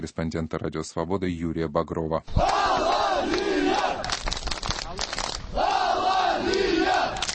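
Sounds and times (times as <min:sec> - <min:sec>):
speech: 0:00.0 - 0:04.2
football fans chanting in unison: 0:02.3 - 0:04.1, 0:05.5 - 0:07.2.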